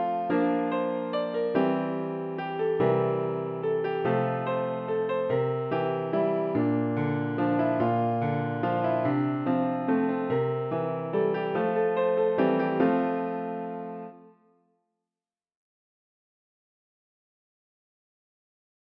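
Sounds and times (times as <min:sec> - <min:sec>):
piano: 0:00.0 - 0:14.6.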